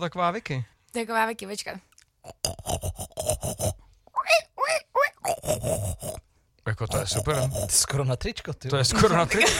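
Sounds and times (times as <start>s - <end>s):
speech: 0.0s - 3.8s, 5.6s - 9.5s
person imitating pig grunting: 2.2s - 4.4s, 5.1s - 6.2s, 6.8s - 8.0s.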